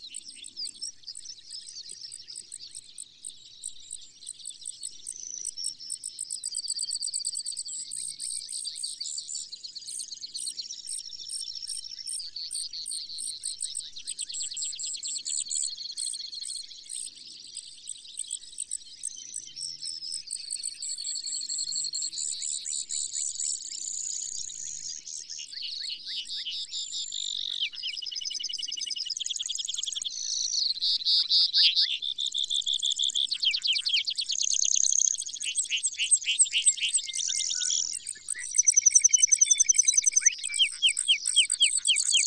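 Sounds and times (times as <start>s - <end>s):
Brewer's sparrow trilling song: 0.0s - 42.2s
chorus of small birds chattering: 29.1s - 42.2s.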